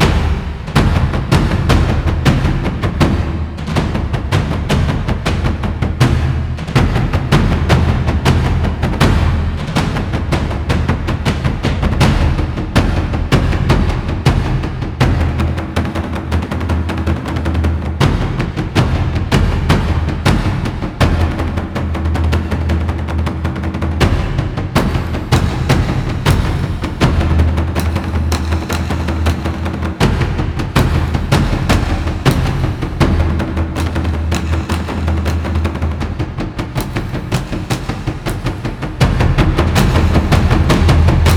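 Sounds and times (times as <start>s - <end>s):
powerful taiko drumming: 0.0s - 41.3s.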